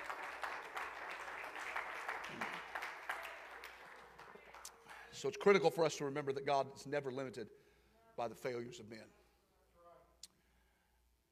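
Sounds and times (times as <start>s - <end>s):
audience clapping: 0.0s - 5.6s
speech: 5.2s - 7.6s, 8.2s - 9.2s.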